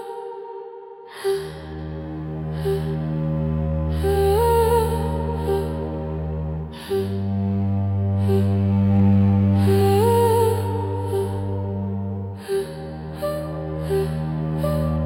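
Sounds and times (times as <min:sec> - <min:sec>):
spiritual spooky soundscape: 0:01.0 - 0:15.0.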